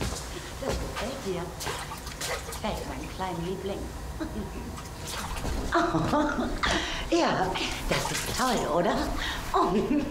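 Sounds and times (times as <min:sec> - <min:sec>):
speech: 0:00.6 - 0:10.0
water splashing during a little one's bath: 0:01.0 - 0:03.4, 0:04.7 - 0:05.8, 0:07.6 - 0:09.3.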